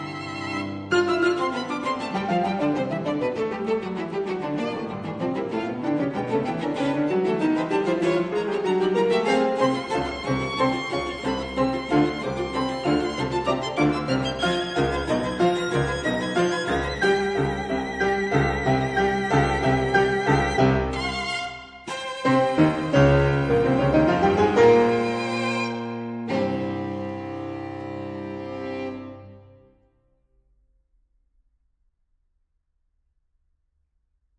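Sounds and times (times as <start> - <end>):
cello in a piano trio: 0.0 - 29.8
violin in a piano trio: 0.0 - 29.8
piano in a piano trio: 0.0 - 29.9.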